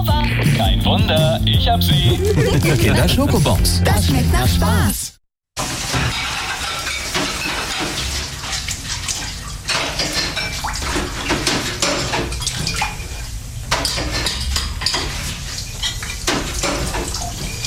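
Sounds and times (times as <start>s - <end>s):
laughter: 0.2s - 3.6s
speech: 1.7s - 5.1s
running water splashing while washing up dishes: 5.6s - 17.6s
dishes clinking and knocking: 5.9s - 17.6s.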